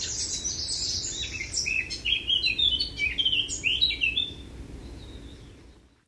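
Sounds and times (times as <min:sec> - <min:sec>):
Eurasian blackcap song: 0:00.0 - 0:06.0
low background hiss: 0:00.0 - 0:06.0.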